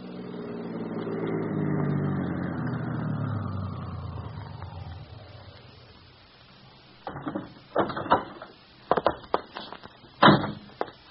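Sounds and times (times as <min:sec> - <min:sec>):
car engine winding down as the car slows and stops: 0:00.0 - 0:07.7
sharp clunks and rattles: 0:07.0 - 0:09.5, 0:10.2 - 0:10.7.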